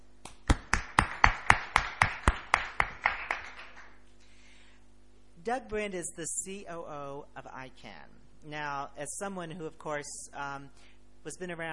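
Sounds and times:
audience applause with sharp evenly spaced claps: 0:00.0 - 0:04.0
speech: 0:05.5 - 0:11.7.

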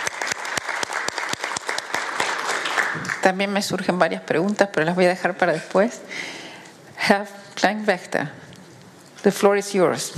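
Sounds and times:
audience applause thanking an ambassador after his presentation: 0:00.0 - 0:03.3
speech: 0:03.0 - 0:06.4, 0:07.0 - 0:08.5, 0:09.2 - 0:10.1.

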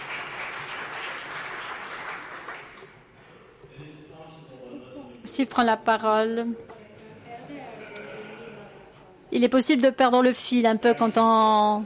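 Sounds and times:
applause for adoption by acclamation: 0:00.0 - 0:03.0
speech: 0:05.4 - 0:06.7, 0:09.4 - 0:11.8.

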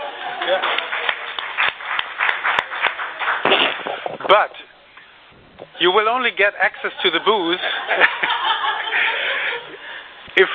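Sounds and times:
laughter: 0:00.0 - 0:01.3, 0:05.7 - 0:10.5
small crowd clapping: 0:00.0 - 0:04.1
speech: 0:00.5 - 0:00.8, 0:04.3 - 0:04.6, 0:05.8 - 0:09.1, 0:10.4 - 0:10.5.

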